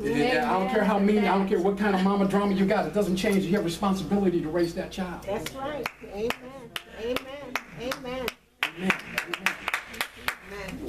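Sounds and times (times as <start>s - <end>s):
speech: 0.0s - 6.4s
church congregation clapping during a Mother's Day service: 7.5s - 10.7s.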